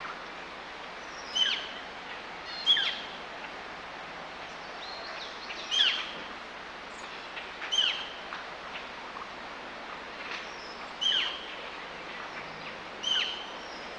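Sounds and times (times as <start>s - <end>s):
bird: 1.0s - 3.2s, 4.5s - 6.3s, 6.9s - 8.9s, 10.2s - 13.9s.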